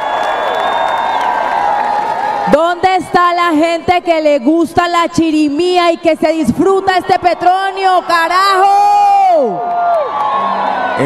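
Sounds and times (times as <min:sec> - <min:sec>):
audience clapping and cheering: 0:00.0 - 0:02.6, 0:09.1 - 0:11.0
speech: 0:02.5 - 0:09.7.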